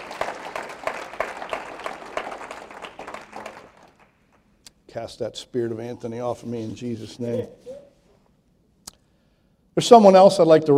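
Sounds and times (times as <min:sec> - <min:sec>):
audience hand clapping: 0:00.0 - 0:04.8
speech: 0:05.0 - 0:07.7, 0:09.8 - 0:10.7.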